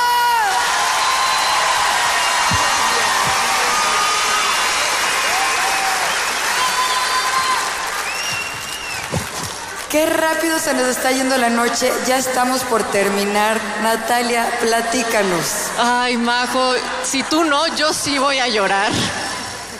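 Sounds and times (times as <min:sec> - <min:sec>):
audience applause and cheering: 0:00.0 - 0:09.9
speech: 0:10.0 - 0:19.2.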